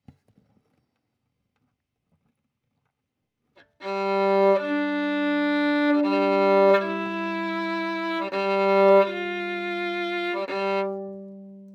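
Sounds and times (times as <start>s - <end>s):
violin: 3.6s - 11.7s.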